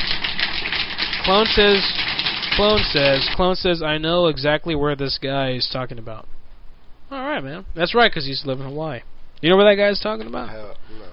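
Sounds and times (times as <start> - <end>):
applause sound effect: 0.0 - 3.4
speech: 1.3 - 2.0, 2.6 - 6.3, 7.1 - 11.1.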